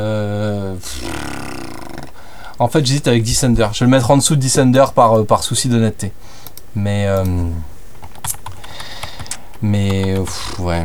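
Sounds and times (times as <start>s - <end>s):
speech: 2.6s - 6.2s, 6.8s - 8.4s, 9.6s - 10.8s
computer keyboard typing text into a file: 4.6s - 5.5s, 6.4s - 7.4s, 8.0s - 10.6s.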